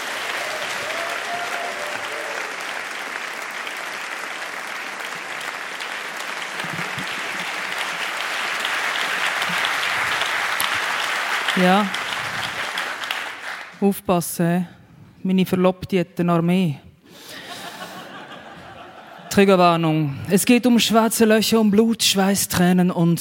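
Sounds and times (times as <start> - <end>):
audience applause: 0.0 - 13.8
speech: 11.6 - 12.0, 13.8 - 16.8, 19.4 - 23.1
laughter: 17.3 - 19.4.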